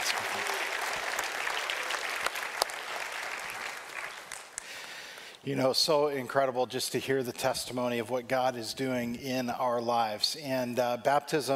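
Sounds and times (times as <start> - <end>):
audience applause: 0.0 - 5.2
speech: 5.4 - 11.5.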